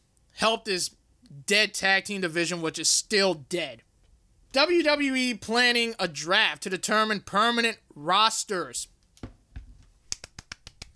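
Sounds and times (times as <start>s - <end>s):
speech: 0.4s - 3.9s, 4.5s - 8.9s
soft polite golf clap: 10.1s - 10.9s.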